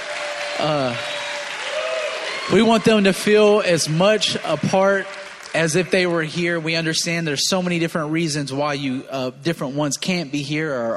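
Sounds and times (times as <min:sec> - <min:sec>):
audience clapping hands: 0:00.0 - 0:07.8
speech: 0:00.6 - 0:01.1, 0:02.5 - 0:10.9.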